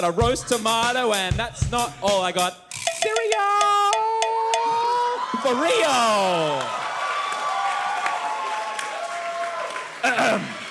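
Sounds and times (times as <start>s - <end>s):
speech: 0.0s - 3.8s, 5.4s - 6.8s, 10.0s - 10.5s
audience cheering and applause: 3.3s - 10.6s.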